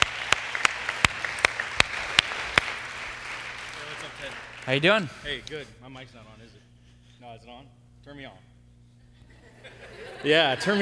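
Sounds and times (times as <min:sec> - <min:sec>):
audience applause: 0:00.0 - 0:05.4
speech: 0:04.3 - 0:08.5, 0:09.6 - 0:10.8
laughter: 0:09.1 - 0:10.8.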